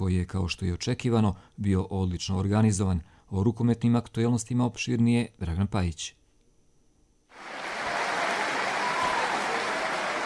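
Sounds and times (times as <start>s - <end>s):
speech: 0.0s - 6.2s
crowd clapping at a handball tournament in Doboj's sports stadium: 7.4s - 10.2s.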